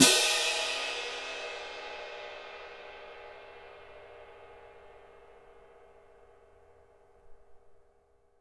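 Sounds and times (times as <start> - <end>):
orchestral cymbal: 0.0 - 6.0.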